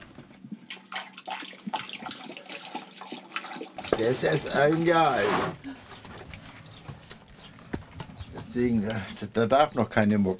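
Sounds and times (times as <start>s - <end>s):
water being poured in a steady splashing stream: 0.6s - 5.3s
speech: 4.0s - 5.6s, 8.6s - 10.3s.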